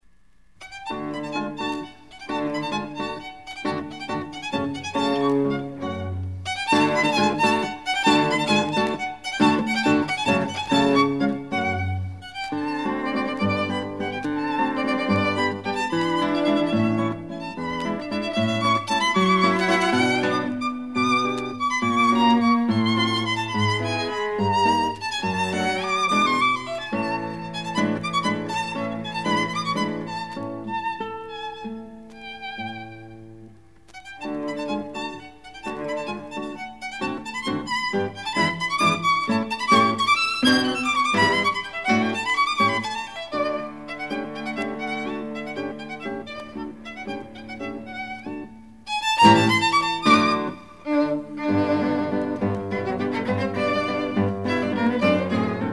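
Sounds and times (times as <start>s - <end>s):
guitar trio playing: 0.7s - 55.7s.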